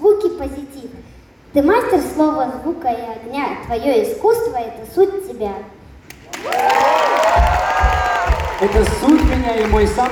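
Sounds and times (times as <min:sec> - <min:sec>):
speech: 0:01.0 - 0:05.8, 0:06.4 - 0:07.5, 0:08.6 - 0:10.1
applause: 0:06.1 - 0:10.1.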